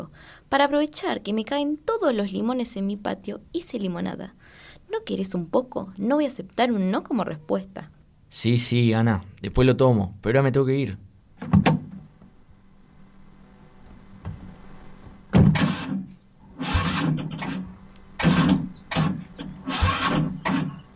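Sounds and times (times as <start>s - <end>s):
speech: 0.0s - 11.6s
car engine cranking but failing to start: 16.6s - 17.6s, 18.2s - 20.8s.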